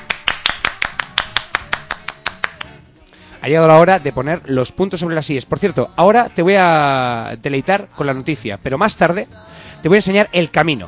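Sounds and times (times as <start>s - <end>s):
single person clapping: 0.0s - 2.8s
speech: 3.4s - 10.8s.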